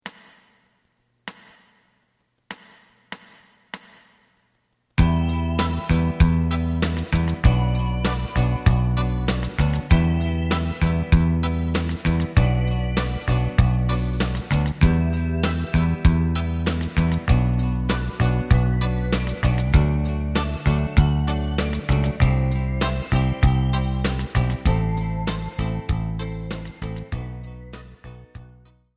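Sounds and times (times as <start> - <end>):
lead melody: 5.0 - 28.4.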